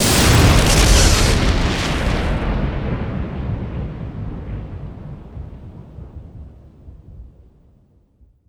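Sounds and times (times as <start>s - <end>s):
large explosion: 0.0s - 6.5s.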